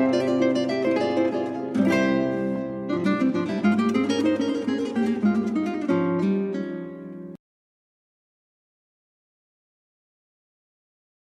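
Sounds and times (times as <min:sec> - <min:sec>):
guitar quartet playing: 0:00.0 - 0:07.4.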